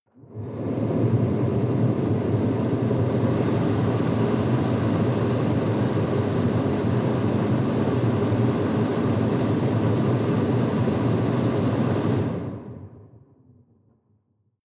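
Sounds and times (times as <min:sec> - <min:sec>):
sports car interior ventilation blowing hard: 0:00.6 - 0:12.7.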